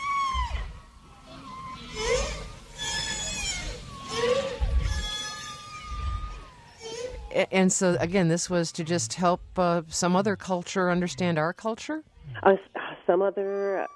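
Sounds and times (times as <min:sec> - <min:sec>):
whale song: 0:00.0 - 0:07.3
speech: 0:07.4 - 0:13.9.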